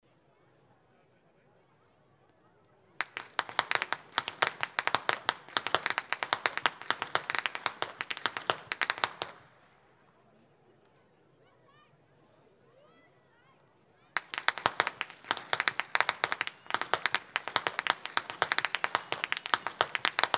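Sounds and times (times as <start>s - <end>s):
youth whip cracking: 3.0s - 9.4s, 14.2s - 20.3s.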